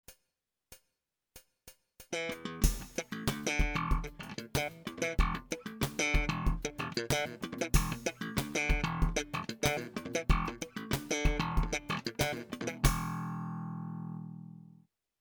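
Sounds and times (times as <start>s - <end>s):
slap electric bass: 2.6s - 14.3s.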